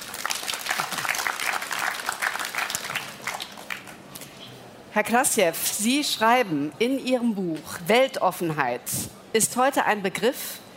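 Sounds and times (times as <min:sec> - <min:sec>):
audience applause: 0:00.0 - 0:04.0
speech: 0:05.0 - 0:10.6.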